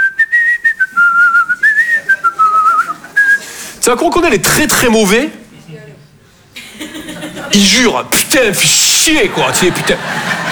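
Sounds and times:
person whistling a tune: 0:00.0 - 0:03.4
laughter: 0:01.4 - 0:03.8, 0:06.5 - 0:10.5
speech: 0:03.9 - 0:05.4, 0:07.6 - 0:10.5.

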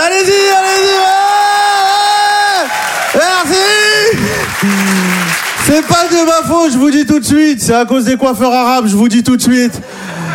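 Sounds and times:
audience cheering: 0:00.0 - 0:06.5
speech: 0:05.8 - 0:10.0.

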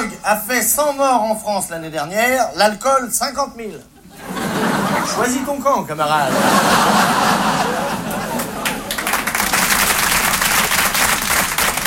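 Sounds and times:
speech: 0:00.2 - 0:04.4, 0:05.0 - 0:07.4
laughter: 0:04.0 - 0:09.6
crowd murmur and voices: 0:06.3 - 0:09.8
comedy show audience applause: 0:06.4 - 0:11.8.

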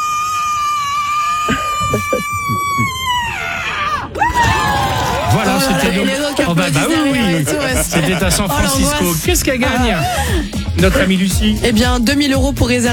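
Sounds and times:
woman's record-loud scream: 0:00.4 - 0:04.8
crowd noise: 0:01.4 - 0:02.9, 0:04.5 - 0:09.6
laughter: 0:01.4 - 0:03.0, 0:05.2 - 0:11.2
speech: 0:06.0 - 0:12.9.

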